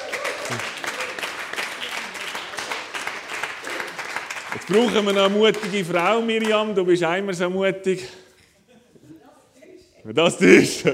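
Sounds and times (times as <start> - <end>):
crowd applause: 0.0 - 7.0
speech: 0.5 - 0.8, 4.6 - 8.2, 10.1 - 10.9.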